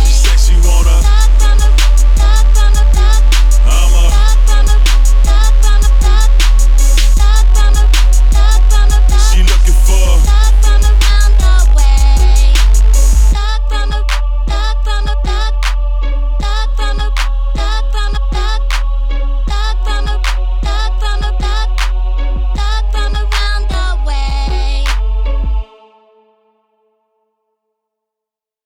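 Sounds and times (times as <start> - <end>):
low bass tone at 41 to 46 Hz: 0.0 - 25.6.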